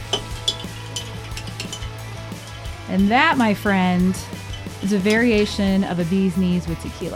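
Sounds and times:
spoon stirring a cocktail: 0.0 - 5.6
speech: 2.9 - 7.1.

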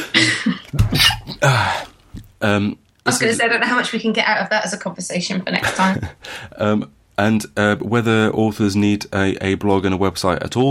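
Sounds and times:
person sneezing: 0.0 - 1.9
speech: 2.4 - 10.7.

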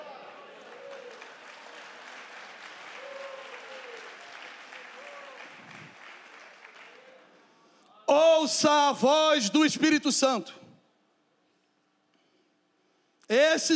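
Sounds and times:
audience applause: 0.0 - 7.3
speech: 8.5 - 10.6, 13.5 - 13.7.

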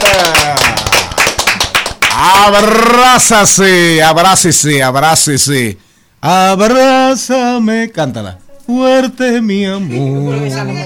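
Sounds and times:
loud steady rhythmic clapping: 0.0 - 3.0
speech: 2.5 - 10.8.

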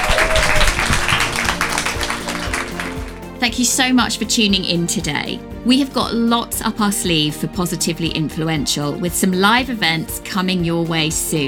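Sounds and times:
audience applause: 0.0 - 3.2
speech: 3.6 - 11.4.

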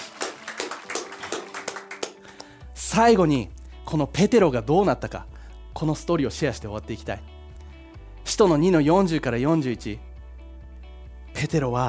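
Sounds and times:
group clapping in rhythm: 0.0 - 2.7
speech: 2.9 - 7.3, 8.3 - 10.1, 11.4 - 11.8.

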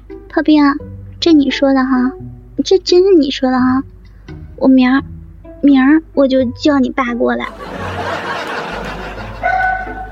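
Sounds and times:
speech: 0.3 - 3.9, 4.6 - 7.8
laughter: 7.5 - 10.1
dog barking: 9.3 - 10.1.

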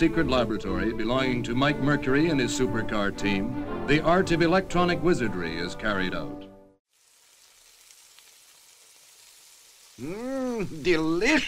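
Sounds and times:
speech: 0.0 - 6.5, 10.0 - 11.4
ham and eggs sizzling in a frying pan for breakfast: 6.9 - 11.4.

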